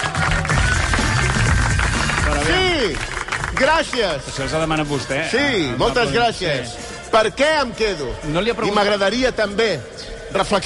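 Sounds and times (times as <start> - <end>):
applause: 0.0 - 4.8
speech: 2.8 - 10.6.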